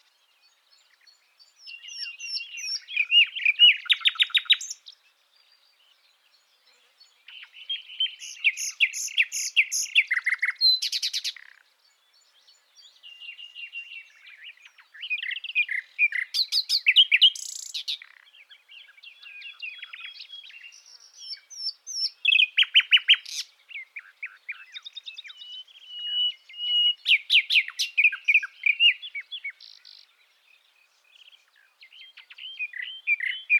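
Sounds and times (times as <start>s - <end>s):
common nightingale Luscinia megarhynchos singing: 0.0s - 33.5s.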